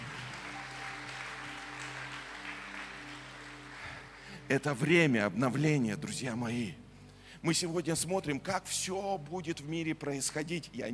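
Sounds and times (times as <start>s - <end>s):
large audience applause: 0.0s - 4.5s
speech: 4.5s - 6.8s, 7.4s - 10.9s.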